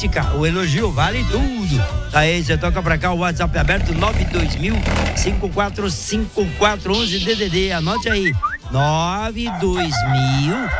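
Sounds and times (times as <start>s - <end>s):
speech: 0.0s - 10.7s
rooster crowing: 9.4s - 10.7s.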